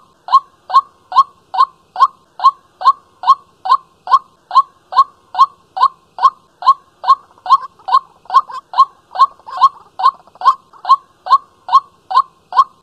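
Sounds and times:
white-breasted waterhen calling: 0.0s - 12.8s.

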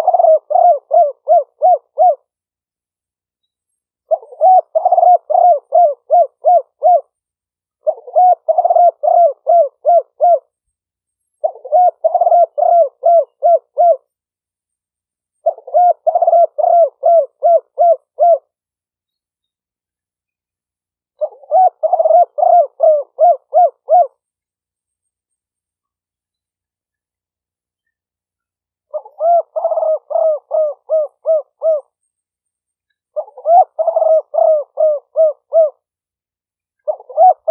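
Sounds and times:
spotted dove cooing: 0.0s - 2.4s, 4.0s - 7.2s, 7.8s - 10.6s, 11.4s - 14.1s, 15.4s - 18.6s, 21.2s - 24.2s, 28.8s - 32.0s, 33.1s - 36.0s, 36.8s - 37.5s.

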